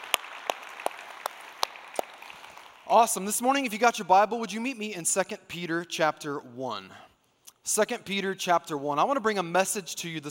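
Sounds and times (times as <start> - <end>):
church congregation clapping to welcome guests at a morning service: 0.0 - 3.4
speech: 2.9 - 7.1, 7.7 - 10.2.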